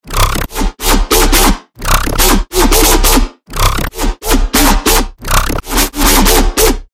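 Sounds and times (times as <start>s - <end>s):
dogstep music: 0.1s - 6.9s.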